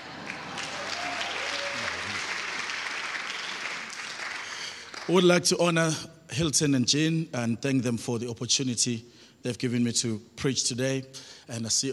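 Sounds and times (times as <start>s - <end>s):
audience clapping: 0.0s - 5.4s
speech: 5.1s - 11.9s.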